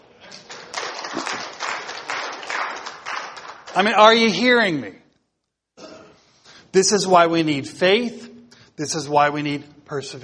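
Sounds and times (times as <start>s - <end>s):
clapping: 0.3s - 4.0s
speech: 3.7s - 5.0s, 6.8s - 10.2s.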